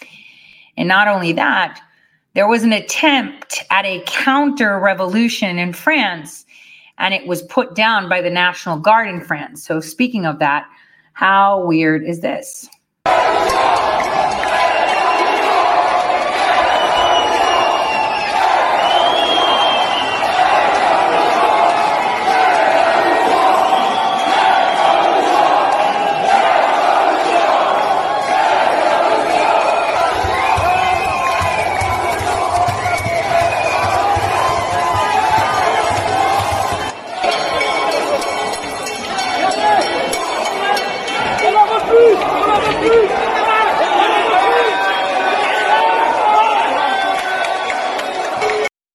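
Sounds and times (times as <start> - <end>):
speech: 0.8 - 6.4, 7.0 - 14.2
crowd shouting while entering a town hall: 13.0 - 48.7.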